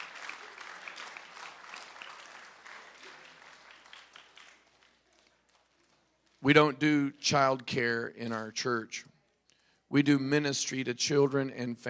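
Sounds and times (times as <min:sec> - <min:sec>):
audience applause: 0:00.0 - 0:06.4
speech: 0:06.4 - 0:09.1, 0:09.9 - 0:11.8.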